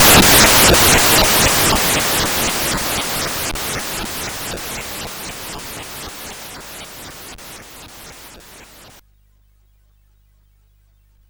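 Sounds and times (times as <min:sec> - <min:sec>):
frantic chip synth music on CSG8580R5 chip: 0:00.0 - 0:09.0.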